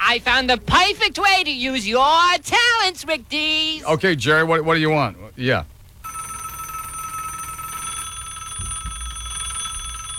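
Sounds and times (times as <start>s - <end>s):
speech: 0.1s - 5.7s
telephone bell ringing: 6.0s - 10.1s.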